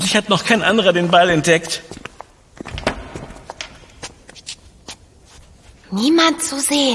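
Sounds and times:
speech: 0.1s - 2.0s, 5.9s - 6.9s
footsteps walking: 0.8s - 6.2s.

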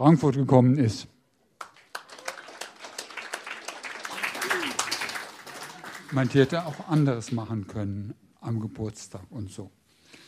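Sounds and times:
speech: 0.0s - 1.1s, 6.1s - 9.8s
audience clapping: 1.6s - 7.6s.

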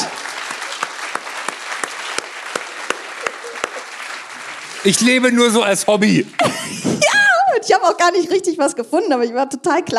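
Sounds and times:
audience applause: 0.0s - 7.0s
laughter: 2.6s - 4.0s, 6.1s - 7.2s
speech: 4.8s - 9.9s.

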